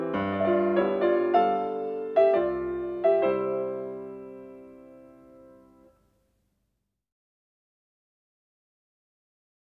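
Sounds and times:
piano mazurka in C major: 0:00.0 - 0:06.0.

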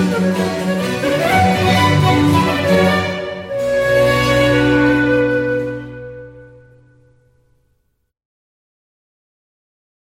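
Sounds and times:
baroque orchestral suite movement in B minor: 0:00.0 - 0:07.2.

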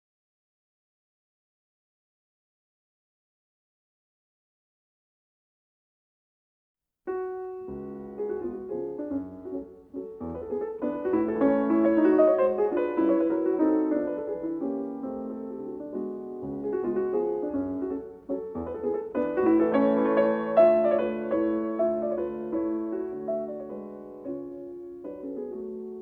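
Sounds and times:
mazurka on piano: 0:07.1 - 0:26.0.

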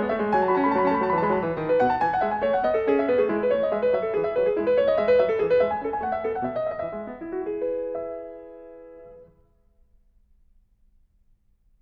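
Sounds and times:
baroque dance piece: 0:00.0 - 0:09.3.

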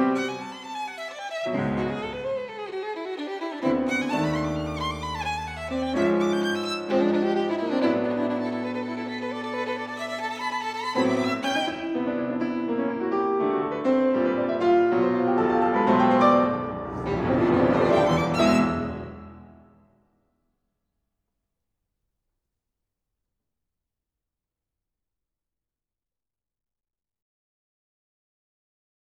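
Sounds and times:
violin: 0:00.0 - 0:13.2, 0:15.0 - 0:19.6
piano: 0:00.0 - 0:19.9.

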